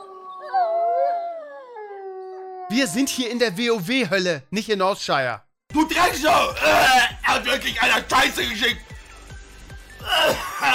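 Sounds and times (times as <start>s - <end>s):
wolf-like howls in moor ambience: 0.0s - 2.8s
speech: 2.7s - 8.9s, 10.2s - 10.7s.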